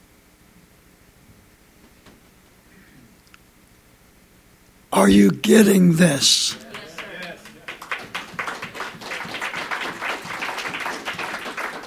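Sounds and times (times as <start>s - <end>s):
speech: 5.0s - 6.6s
crowd applauding: 5.0s - 11.8s.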